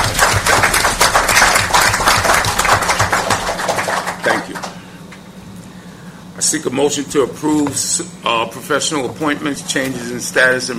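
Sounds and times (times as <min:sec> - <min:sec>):
audience applause: 0:00.0 - 0:04.8
speech: 0:06.5 - 0:10.7.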